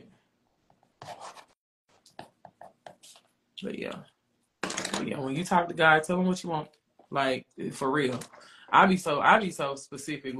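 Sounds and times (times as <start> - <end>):
name being written down by hand: 1.0 - 1.6
speech: 3.6 - 4.1, 5.0 - 10.3.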